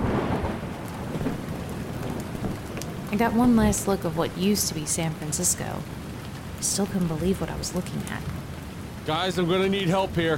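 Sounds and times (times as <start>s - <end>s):
thunder: 0.0s - 3.1s
rain: 0.0s - 10.3s
speech: 3.1s - 6.0s, 6.6s - 8.4s, 9.0s - 10.3s.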